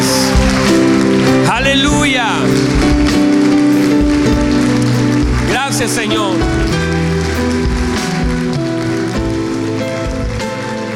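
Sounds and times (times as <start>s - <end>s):
loud audience applause: 0.0s - 10.9s
speech: 5.8s - 6.8s.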